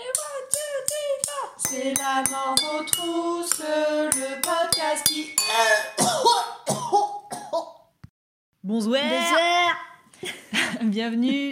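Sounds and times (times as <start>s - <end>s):
speech: 1.7s - 7.1s, 8.7s - 11.5s
person coughing harshly: 5.5s - 7.8s.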